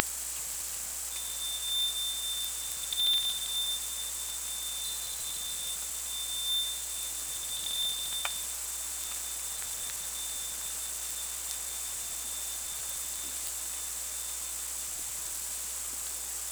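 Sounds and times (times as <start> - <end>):
sonar ping: 1.1 - 13.4.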